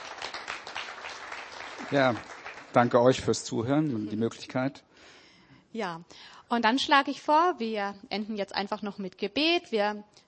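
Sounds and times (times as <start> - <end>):
audience applause: 0.0 - 3.7
speech: 1.8 - 4.9, 5.7 - 10.2.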